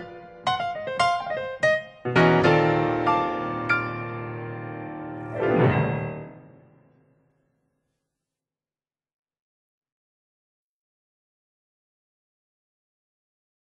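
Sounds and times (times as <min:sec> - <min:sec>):
instrumental music: 0:00.0 - 0:07.0.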